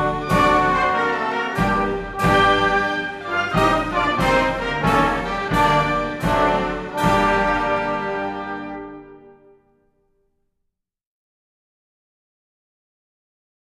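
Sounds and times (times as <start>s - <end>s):
instrumental music: 0.0s - 10.2s.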